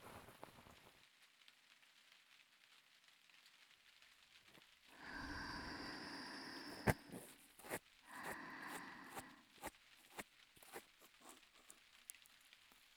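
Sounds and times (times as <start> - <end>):
left ear cleaning: 5.0 - 11.8.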